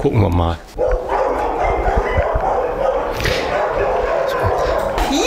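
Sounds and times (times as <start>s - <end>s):
speech: 0.0s - 0.8s
dog barking: 0.8s - 5.1s.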